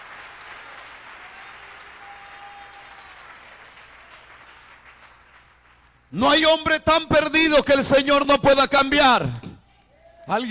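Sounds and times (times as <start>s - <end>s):
audience applauding: 0.0s - 6.0s
speech: 6.1s - 9.4s, 10.3s - 10.4s.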